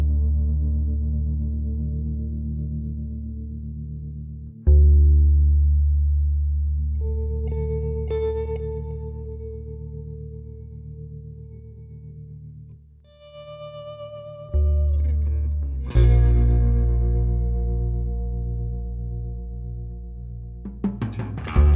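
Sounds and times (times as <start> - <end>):
bass guitar: 0.0 - 21.7
atmospheric muffled drums: 20.7 - 21.7.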